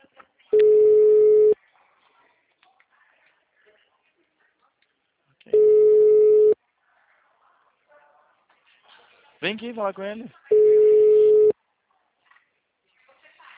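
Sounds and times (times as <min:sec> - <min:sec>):
unanswered telephone call ringing tones: 0:00.6 - 0:01.6, 0:05.5 - 0:06.6, 0:10.5 - 0:11.5
speech: 0:09.4 - 0:10.6.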